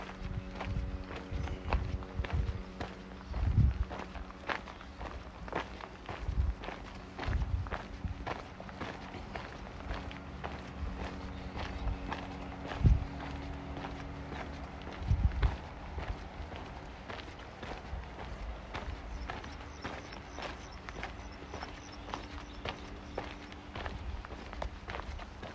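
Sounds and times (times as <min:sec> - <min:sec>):
faint high whine: 0:00.0 - 0:25.2
footsteps walking in Modiin city park: 0:00.0 - 0:25.5
low hum and steady tones: 0:00.0 - 0:25.5.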